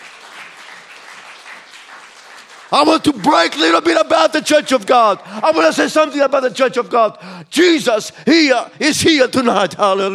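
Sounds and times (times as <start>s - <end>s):
church congregation clapping during an evening service: 0.0s - 5.3s
speech: 2.7s - 10.1s.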